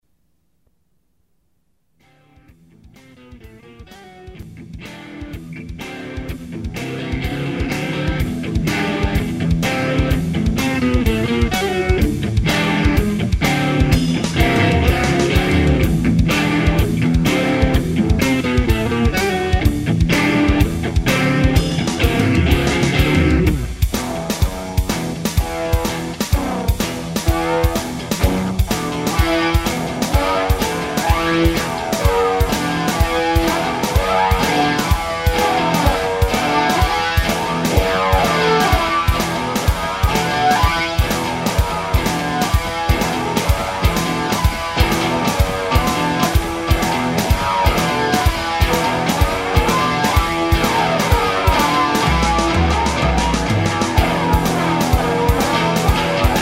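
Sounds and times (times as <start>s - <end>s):
musical riff: 5.1s - 56.4s.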